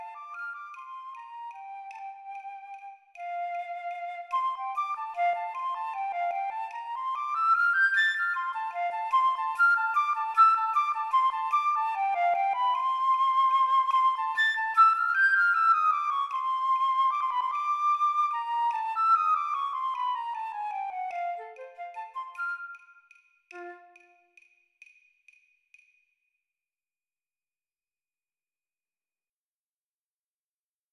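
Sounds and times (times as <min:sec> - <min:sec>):
flute play-along at 50 BPM: 0:00.0 - 0:24.3.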